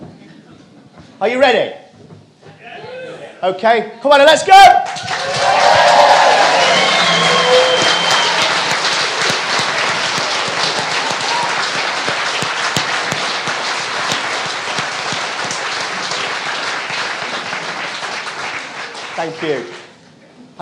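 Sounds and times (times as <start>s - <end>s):
speech: 1.2s - 1.8s, 3.4s - 5.4s, 19.4s - 19.8s
crowd clapping: 4.8s - 20.0s.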